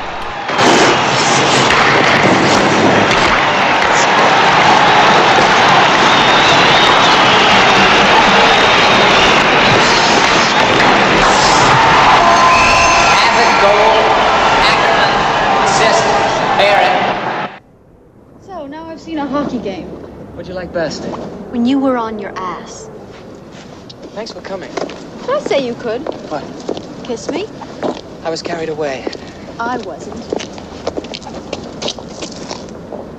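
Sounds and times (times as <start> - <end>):
hockey crowd roaring and cheering after a goal: 0.0 - 17.6
speech: 20.7 - 22.9, 24.2 - 27.6, 28.2 - 30.5.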